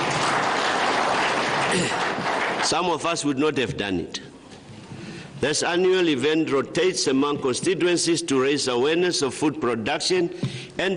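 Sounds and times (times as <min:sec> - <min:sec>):
applause at an annual rural Crop Day event: 0:00.0 - 0:03.4
speech: 0:01.7 - 0:02.0, 0:02.6 - 0:04.3, 0:05.4 - 0:10.9.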